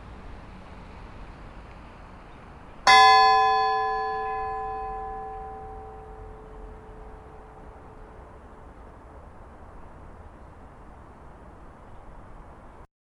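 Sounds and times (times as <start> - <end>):
funeral bells ringing at Laugarneskirkja church: 2.9 - 8.0.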